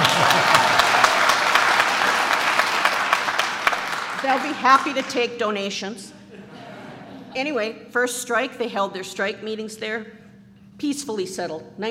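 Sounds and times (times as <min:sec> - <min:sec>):
laughter: 0:00.0 - 0:02.4, 0:06.2 - 0:07.3
room full of people clapping: 0:00.0 - 0:05.3
speech: 0:04.3 - 0:06.2, 0:07.4 - 0:10.2, 0:10.8 - 0:11.9.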